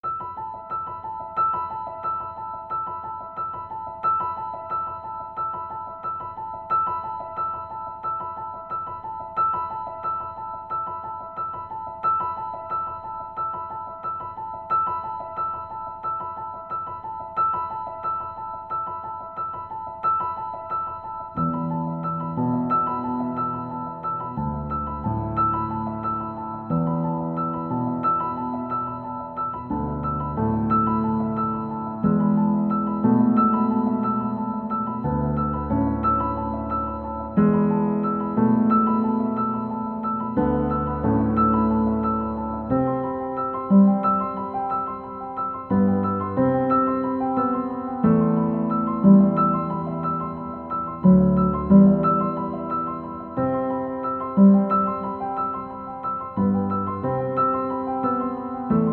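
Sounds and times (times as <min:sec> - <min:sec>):
solo piano: 0:00.0 - 0:58.9.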